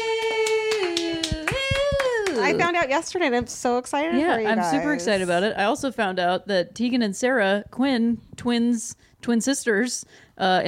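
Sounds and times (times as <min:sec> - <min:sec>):
sharp handclaps: 0:00.0 - 0:02.7
speech: 0:02.5 - 0:10.6.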